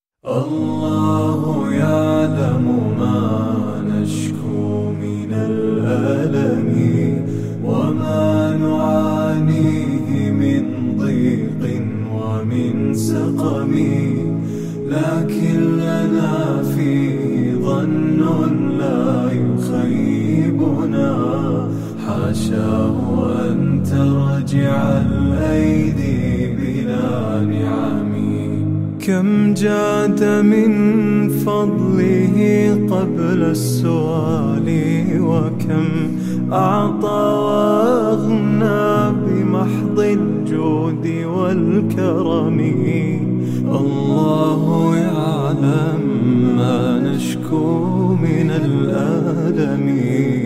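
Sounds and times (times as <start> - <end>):
unaccompanied vocal nasheed: 0.2 - 50.4.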